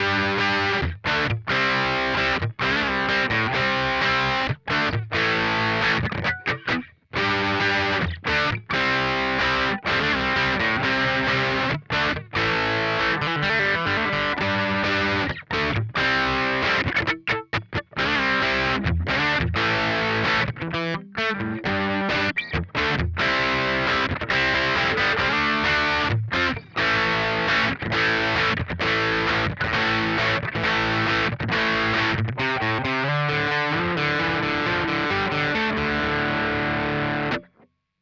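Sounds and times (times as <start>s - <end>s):
Vox Valvenergy Mystic Edge guitar amp cabinet: 0.0s - 37.6s.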